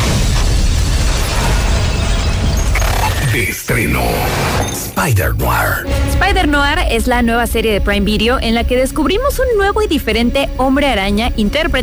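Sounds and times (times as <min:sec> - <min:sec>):
loud explosion of gasoline tanks: 0:00.0 - 0:03.6
speech: 0:03.4 - 0:11.8.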